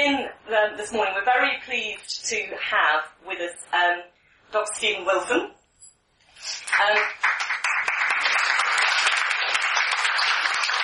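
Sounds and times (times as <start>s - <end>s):
speech: 0.2s - 5.6s, 6.4s - 7.4s
audience applause: 6.7s - 10.8s.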